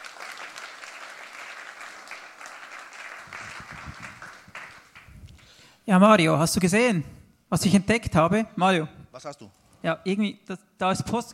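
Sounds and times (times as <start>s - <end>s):
audience applause: 0.0s - 5.2s
speech: 5.9s - 11.3s.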